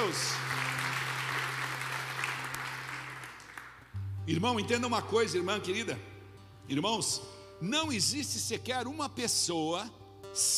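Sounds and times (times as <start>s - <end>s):
speech: 0.0s - 0.4s, 4.3s - 6.1s, 6.7s - 10.5s
audience applauding: 0.0s - 3.9s.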